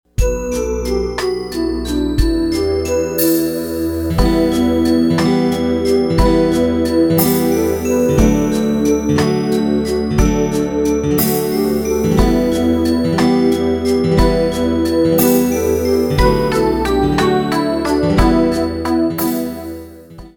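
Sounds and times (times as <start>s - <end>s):
jig tune: 0.2s - 20.2s.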